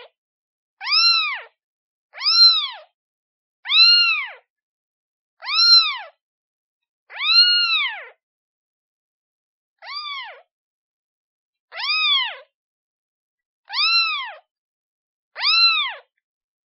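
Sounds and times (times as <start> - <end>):
kitten meowing calling for its mother: 0.8 - 1.5, 2.2 - 2.9, 3.7 - 4.5, 5.4 - 6.2, 7.1 - 8.2, 9.8 - 10.5, 11.7 - 12.5, 13.7 - 14.5, 15.4 - 16.1.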